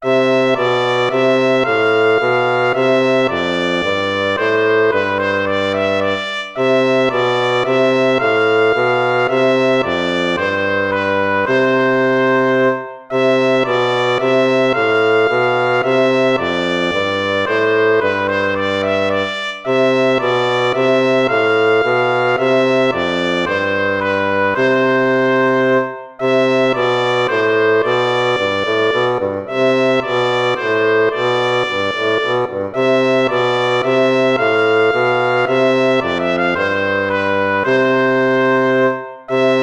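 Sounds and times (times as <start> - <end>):
minuet: 0.0 - 39.6.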